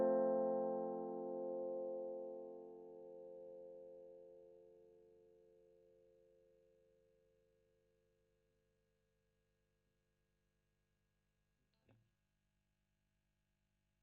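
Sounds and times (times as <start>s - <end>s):
electric guitar recorded with Royer microphone: 0.0s - 5.0s.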